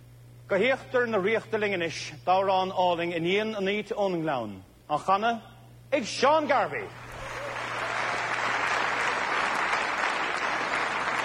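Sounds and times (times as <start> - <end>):
speech: 0.5 - 7.0
large crowd applauding at live recording: 7.0 - 11.2.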